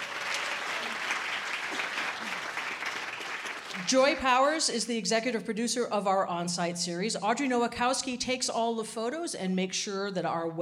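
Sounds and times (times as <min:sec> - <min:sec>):
studio audience applause at a live radio show recording: 0:00.0 - 0:04.0
speech: 0:03.8 - 0:10.6.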